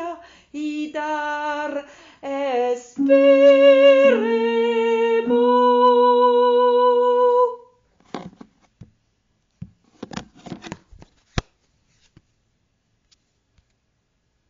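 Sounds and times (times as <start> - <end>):
sopranos singing: 1.0 - 7.6.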